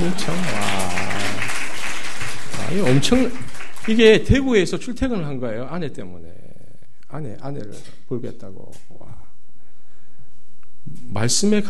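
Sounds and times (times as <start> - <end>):
speech: 0.0 - 0.5, 2.7 - 6.4, 7.1 - 9.2, 10.8 - 11.6
audience clapping: 0.0 - 4.8.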